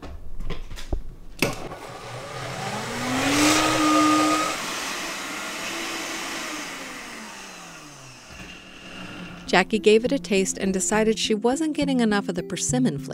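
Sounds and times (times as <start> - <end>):
blender blending persimmon sauce: 1.5 - 9.5
speech: 9.5 - 13.1.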